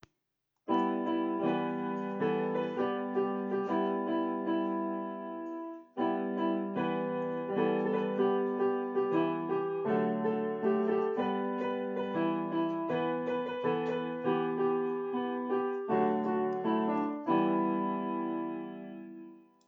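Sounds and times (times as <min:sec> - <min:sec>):
instrumental verse music: 0:00.7 - 0:19.6.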